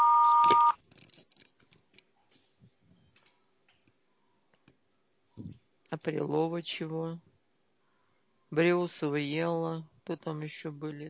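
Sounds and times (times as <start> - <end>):
answering machine beep tone: 0.0 - 0.8
speech: 6.0 - 7.3, 8.5 - 11.0.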